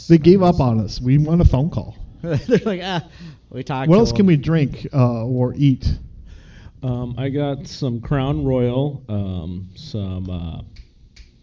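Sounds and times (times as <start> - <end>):
speech: 0.0 - 6.1, 6.8 - 10.7
finger snapping at a casual gathering at a house: 10.8 - 11.4.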